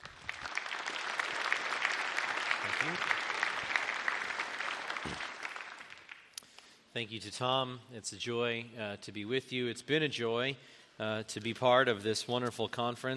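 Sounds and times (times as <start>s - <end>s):
conference audience clapping welcoming a speaker: 0.0s - 6.7s
speech: 2.8s - 3.1s, 7.0s - 13.1s.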